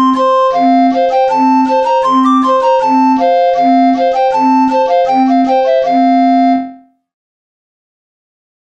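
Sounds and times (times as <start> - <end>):
flabiol pipe playing old English dance: 0.0 - 6.8.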